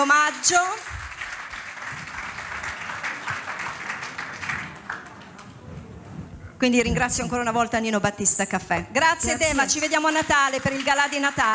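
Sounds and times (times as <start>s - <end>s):
speech: 0.0s - 1.0s, 6.6s - 11.5s
audience applauding: 0.7s - 6.3s, 9.5s - 11.5s.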